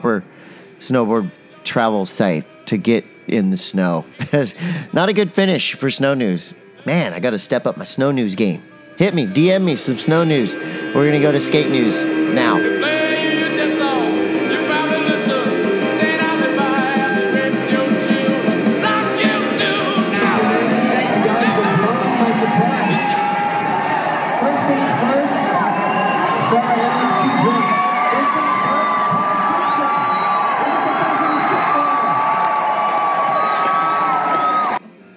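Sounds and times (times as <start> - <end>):
speech: 0.0 - 13.0
crowd cheering at skateboard pro announcement: 9.1 - 34.9.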